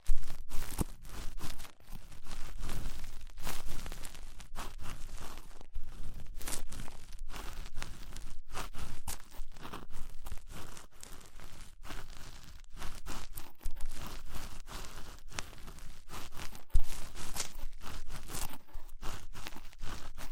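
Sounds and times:
bright crisp flicks and pops: 0.0s - 1.8s, 16.2s - 18.5s
ear cleaning scratching crinkling and tearing with rhinestone and clay removal: 0.0s - 20.3s.

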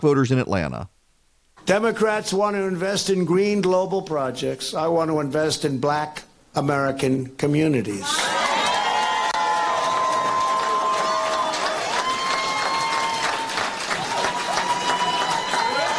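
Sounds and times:
speech: 0.0s - 1.0s, 1.7s - 8.3s
large rally crowd cheering and applauding: 8.1s - 15.9s
whoops and shouts: 8.1s - 15.9s.

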